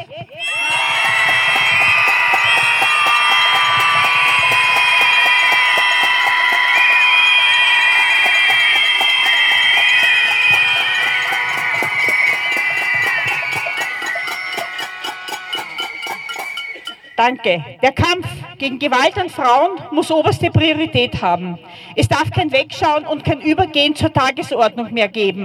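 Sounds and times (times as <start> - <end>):
protest crowd screaming together: 0.3 - 17.2
speech: 17.2 - 25.4.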